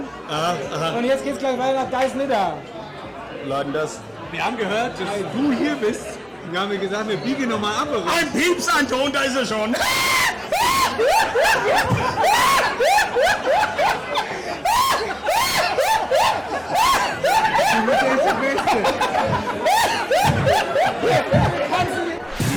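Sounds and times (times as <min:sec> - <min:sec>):
speech: 0:00.3 - 0:02.8, 0:03.4 - 0:15.3, 0:16.3 - 0:22.1
laughing bag novelty toy cackling: 0:09.9 - 0:21.6.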